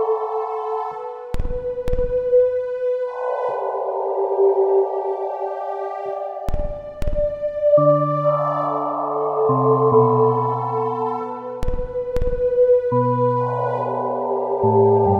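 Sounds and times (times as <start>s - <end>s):
peaceful ambient song: 0.0s - 15.1s.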